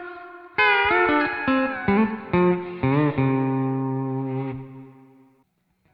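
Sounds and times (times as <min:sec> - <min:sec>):
C6 riff transcribed to E9th: 0:00.6 - 0:04.9.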